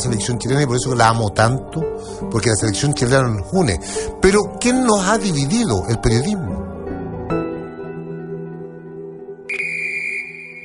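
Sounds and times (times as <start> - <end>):
speech: 0.0 - 6.6
referee's final whistle: 9.5 - 10.6.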